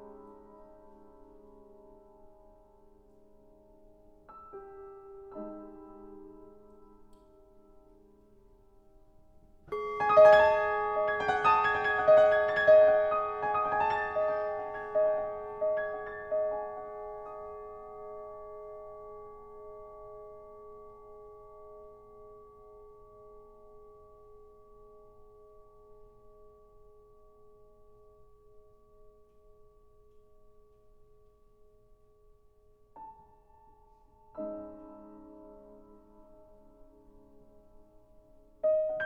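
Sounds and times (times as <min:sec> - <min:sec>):
bells ringing: 0:09.8 - 0:17.7.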